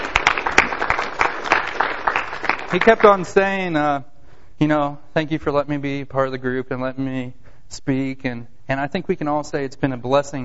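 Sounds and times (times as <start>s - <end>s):
sparse applause from a small group: 0.0s - 3.4s
speech: 2.7s - 10.4s.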